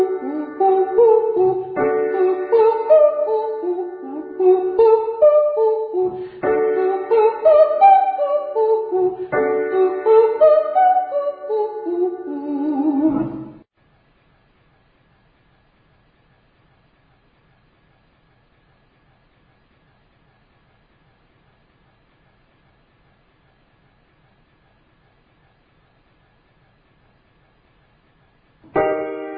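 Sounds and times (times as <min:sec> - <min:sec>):
person singing ascending triads and octaves to high D: 0:00.0 - 0:13.6.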